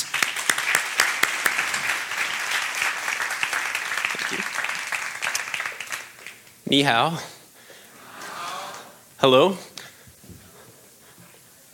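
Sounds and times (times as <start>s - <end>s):
audience applause: 0.0s - 6.4s
speech: 6.7s - 7.3s, 9.2s - 9.7s.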